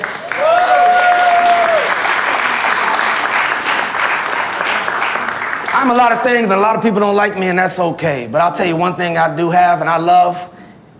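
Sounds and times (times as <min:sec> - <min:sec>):
crowd applauding: 0:00.0 - 0:06.6
speech: 0:05.8 - 0:10.5.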